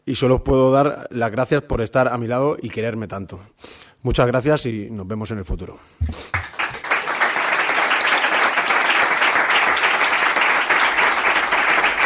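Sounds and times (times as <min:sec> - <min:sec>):
speech: 0:00.1 - 0:06.5
long ovation in the Milquereda press room: 0:06.0 - 0:12.0.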